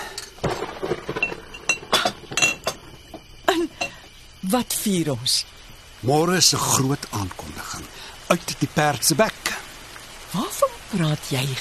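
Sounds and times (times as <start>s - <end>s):
faint fizzing hiss of sparkling wine: 0.0s - 11.5s
sparkling wine poured into two glasses: 0.0s - 11.5s
glassy clinks and taps: 1.1s - 4.1s
speech: 4.5s - 9.4s, 10.3s - 11.5s.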